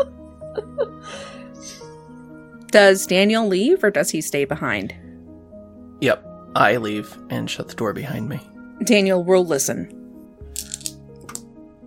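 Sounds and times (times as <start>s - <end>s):
speech: 0.0s - 1.9s, 2.7s - 5.0s, 6.0s - 10.0s
dice clattering across a hard surface: 10.5s - 11.4s.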